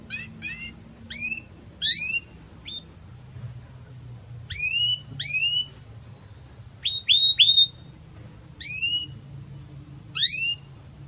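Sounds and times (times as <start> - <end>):
canary singing: 0.0 - 3.0, 4.5 - 5.7, 6.8 - 8.0, 8.6 - 10.8.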